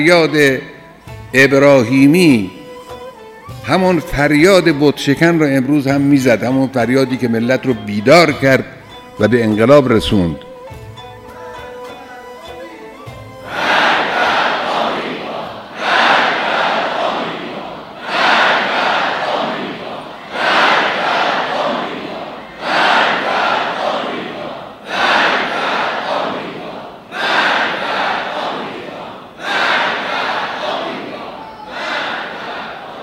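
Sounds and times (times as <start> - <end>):
speech: 0.0 - 0.7, 1.3 - 2.6, 3.6 - 10.5
large crowd chanting a slogan: 13.4 - 33.0.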